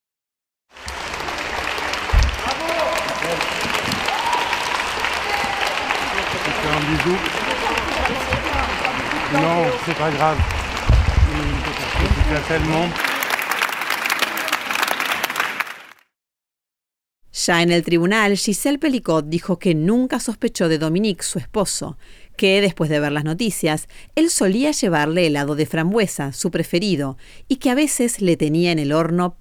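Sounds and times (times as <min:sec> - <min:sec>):
crowd applauding outside a courthouse: 0:00.7 - 0:16.1
speech: 0:07.0 - 0:07.4, 0:09.3 - 0:10.6, 0:11.3 - 0:13.1, 0:17.5 - 0:29.3.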